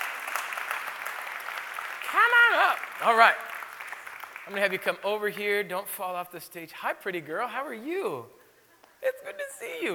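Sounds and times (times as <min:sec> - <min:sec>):
audience clapping: 0:00.0 - 0:05.7
speech: 0:02.7 - 0:03.5, 0:04.5 - 0:08.4, 0:09.0 - 0:09.9.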